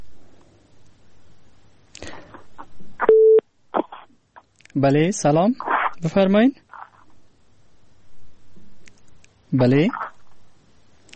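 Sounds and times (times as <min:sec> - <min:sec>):
telephone busy tone after a dropped call: 0:03.1 - 0:03.4
speech: 0:04.8 - 0:06.6, 0:09.5 - 0:10.0.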